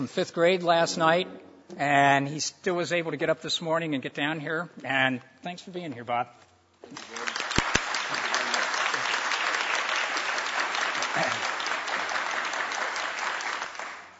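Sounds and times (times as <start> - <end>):
speech: 0.0 - 7.2
audience applause: 6.9 - 14.1.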